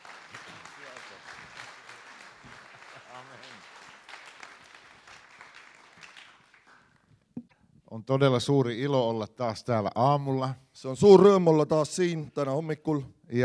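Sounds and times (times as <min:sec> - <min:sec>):
audience applauding: 0:00.0 - 0:07.0
speech: 0:08.0 - 0:13.4.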